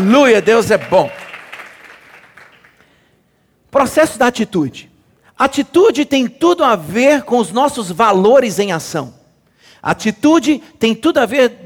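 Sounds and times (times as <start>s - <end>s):
speech: 0.0s - 1.2s, 3.7s - 9.2s, 9.8s - 11.6s
audience applause: 0.0s - 2.8s.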